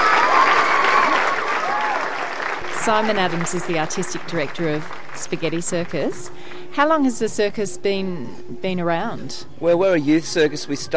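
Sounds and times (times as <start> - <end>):
audience applauding to welcome the Spaghetti Circus: 0.0 - 6.7
speech: 2.8 - 10.9.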